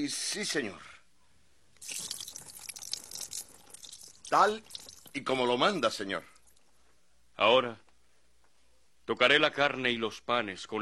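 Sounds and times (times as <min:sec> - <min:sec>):
speech: 0:00.0 - 0:00.9, 0:01.8 - 0:02.2, 0:04.3 - 0:06.3, 0:07.4 - 0:07.8, 0:09.1 - 0:10.7
broth pouring onto a rock: 0:01.8 - 0:06.7.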